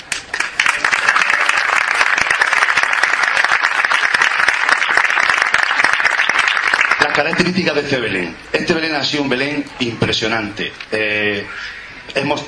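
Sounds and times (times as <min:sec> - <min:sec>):
audience applause: 0:00.1 - 0:07.5
speech: 0:07.2 - 0:12.4.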